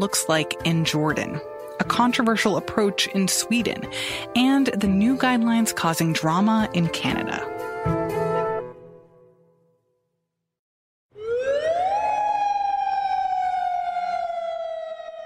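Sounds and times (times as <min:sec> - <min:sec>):
speech: 0:00.0 - 0:08.0
lockdown curfew air-raid siren wailing: 0:11.1 - 0:15.2.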